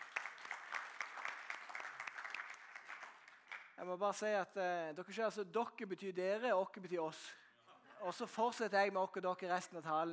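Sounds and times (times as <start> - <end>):
audience applause: 0.0 - 3.6
speech: 3.8 - 7.4, 8.0 - 10.1.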